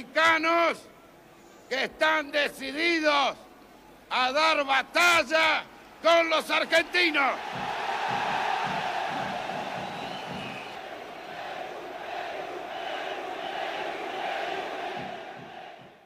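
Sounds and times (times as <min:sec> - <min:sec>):
speech: 0:00.0 - 0:00.9, 0:01.7 - 0:03.4, 0:04.1 - 0:08.2
large crowd shouting and chanting: 0:06.2 - 0:16.0.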